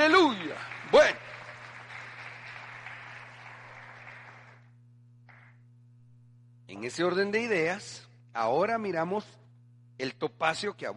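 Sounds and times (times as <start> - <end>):
audience clapping: 0.0 - 5.6
low electrical hum: 0.0 - 10.9
speech: 6.8 - 9.4, 10.0 - 10.9.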